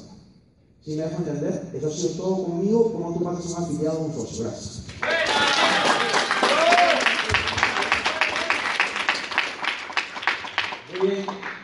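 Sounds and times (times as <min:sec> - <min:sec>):
speech: 0:00.8 - 0:05.3
voices and cheers: 0:05.0 - 0:08.9
audience applause: 0:05.0 - 0:11.6.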